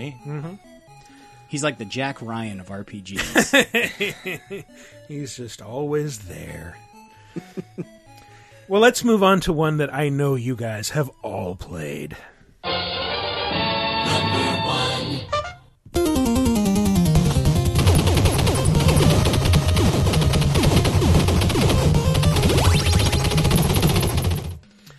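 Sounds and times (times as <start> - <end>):
speech: 0.0 - 0.7, 1.5 - 8.0, 8.7 - 12.3
chiptune game music: 0.0 - 11.9, 12.6 - 24.7
laughter: 3.2 - 4.7, 7.4 - 7.9
Contra video game gunfire from single-shot rifle and machine gun: 17.6 - 24.6.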